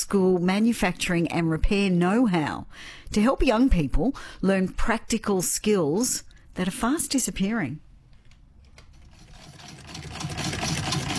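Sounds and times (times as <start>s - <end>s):
speech: 0.0s - 7.8s
very old hand-cranked sewing machine whirring and clattering: 8.8s - 11.1s.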